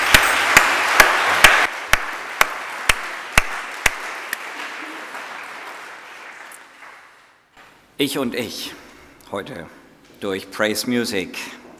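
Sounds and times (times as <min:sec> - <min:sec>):
audience applause: 0:00.0 - 0:07.4
speech: 0:08.0 - 0:11.6.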